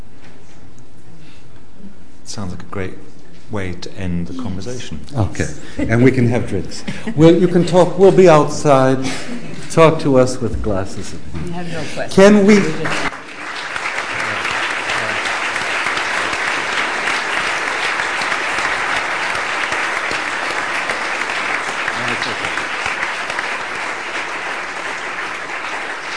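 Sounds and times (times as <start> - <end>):
speech: 2.3 - 13.1
laughter: 5.4 - 9.7, 21.9 - 22.8
audience applause: 12.2 - 26.1.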